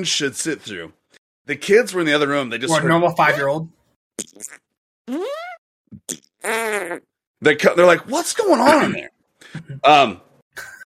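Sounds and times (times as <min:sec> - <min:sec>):
speech: 0:00.0 - 0:05.4, 0:06.0 - 0:10.7
downloaded squeaky wet fart sound effect: 0:04.2 - 0:07.1.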